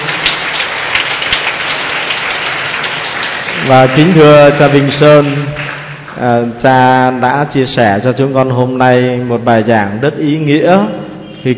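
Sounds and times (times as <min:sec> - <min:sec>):
round of applause: 0:00.0 - 0:07.4
speech: 0:03.7 - 0:05.6, 0:06.2 - 0:11.5.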